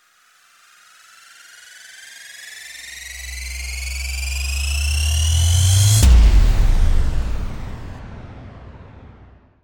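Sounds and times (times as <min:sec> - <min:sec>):
rising impact: 0:03.1 - 0:09.6.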